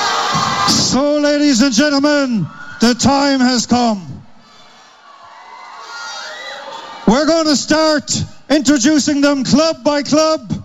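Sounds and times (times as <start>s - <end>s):
crowd cheering and shouting: 0.0s - 1.4s, 2.4s - 3.6s, 4.5s - 7.8s
speech: 1.0s - 4.1s, 7.1s - 10.6s.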